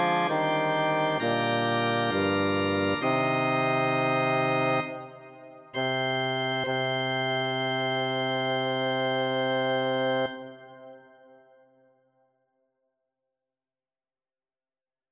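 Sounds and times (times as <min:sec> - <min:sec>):
bass: 0:00.0 - 0:05.2, 0:05.8 - 0:10.7.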